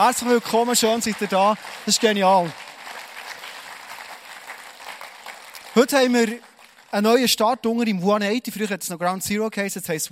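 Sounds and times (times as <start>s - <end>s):
speech: 0.0s - 2.7s, 5.8s - 10.0s
audience applause: 0.0s - 7.0s.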